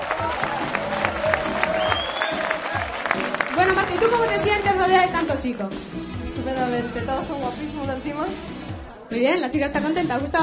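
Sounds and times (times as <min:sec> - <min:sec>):
whistles and cheers: 0:00.0 - 0:03.4
crowd applauding: 0:00.0 - 0:05.5
speech: 0:04.1 - 0:10.4.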